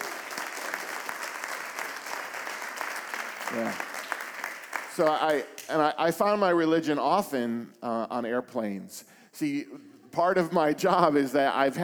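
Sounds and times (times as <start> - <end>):
crowd applause for musicians: 0.0 - 5.7
speech: 3.5 - 3.9, 5.0 - 11.8.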